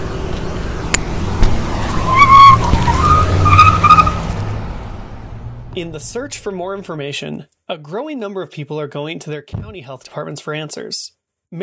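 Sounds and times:
SUV engine rumble: 0:00.0 - 0:06.8
SUV tire squeal: 0:01.6 - 0:04.6
speech: 0:05.8 - 0:11.6.

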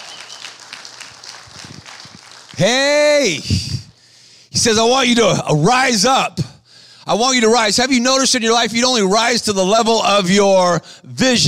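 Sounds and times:
audience clapping: 0:00.0 - 0:03.3
speech: 0:02.6 - 0:03.6, 0:04.6 - 0:06.5, 0:07.1 - 0:11.4.

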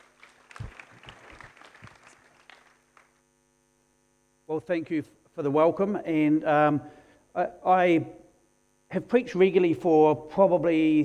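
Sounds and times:
audience applause: 0:00.0 - 0:03.1
speech: 0:04.5 - 0:08.2, 0:08.9 - 0:11.0.

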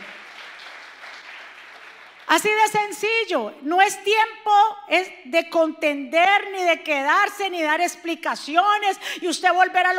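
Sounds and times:
audience applauding: 0:00.0 - 0:02.3
speech: 0:02.4 - 0:09.9.

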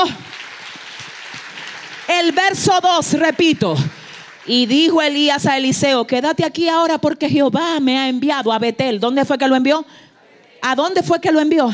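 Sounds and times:
audience applause: 0:00.0 - 0:05.1
speech: 0:02.2 - 0:11.7.

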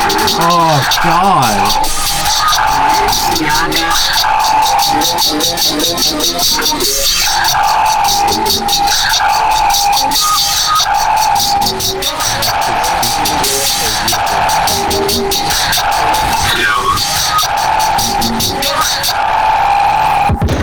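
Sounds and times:
homemade electronic beat with heavy bass and synth lines: 0:00.2 - 0:01.8
speech: 0:00.4 - 0:20.4.

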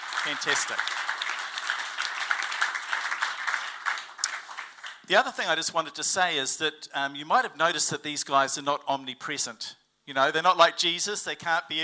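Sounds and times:
audience clapping in praise: 0:00.0 - 0:05.1
speech: 0:00.2 - 0:01.1, 0:05.1 - 0:11.8.

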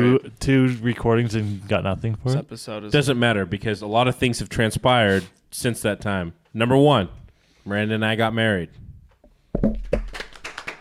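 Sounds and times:
speech: 0:00.0 - 0:08.8, 0:09.5 - 0:10.2
clap sound like an audience: 0:09.9 - 0:10.8.

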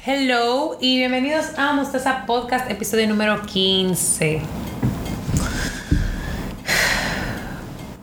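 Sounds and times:
speech: 0:00.1 - 0:04.7
heavy breathing close to a microphone: 0:05.3 - 0:07.7.

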